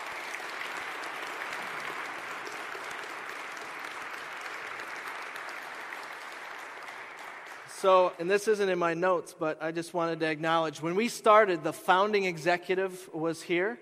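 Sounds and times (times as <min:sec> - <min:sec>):
audience applause: 0:00.0 - 0:08.4
speech: 0:07.8 - 0:13.8.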